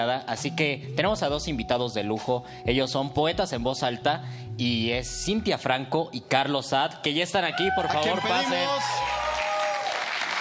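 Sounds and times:
speech: 0:00.0 - 0:09.2
applause welcoming guests: 0:08.0 - 0:10.4.

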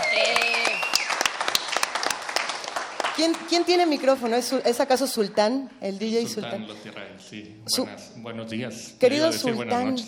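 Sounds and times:
audience applause: 0:00.0 - 0:03.7
speech: 0:03.2 - 0:10.0.

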